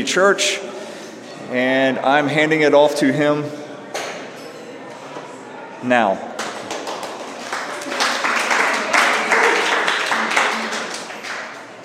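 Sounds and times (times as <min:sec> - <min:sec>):
speech: 0:00.0 - 0:00.8, 0:01.5 - 0:03.6, 0:05.8 - 0:06.3
audience applause: 0:06.4 - 0:11.8.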